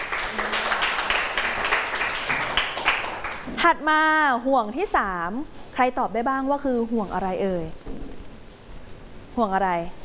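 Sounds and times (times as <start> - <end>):
students clapping for a classmate: 0.0 - 3.5
speech: 3.6 - 8.0, 9.4 - 10.0.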